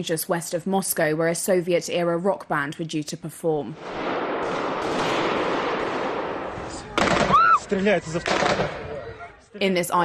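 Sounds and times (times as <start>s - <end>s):
speech: 0.0s - 4.6s, 7.7s - 8.9s, 9.5s - 10.0s
machine gun fire: 3.8s - 8.8s
people shouting: 6.6s - 9.5s
people screaming: 6.7s - 7.8s.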